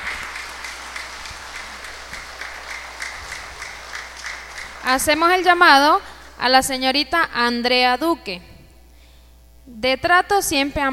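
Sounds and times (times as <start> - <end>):
audience applause: 0.0 - 5.6
speech: 4.8 - 8.5, 9.7 - 10.9.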